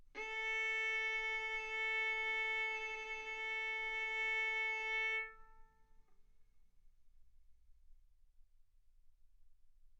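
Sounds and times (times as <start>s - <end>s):
violin bowed mezzo-forte on the A string, A4 and B4: 0.2s - 5.6s.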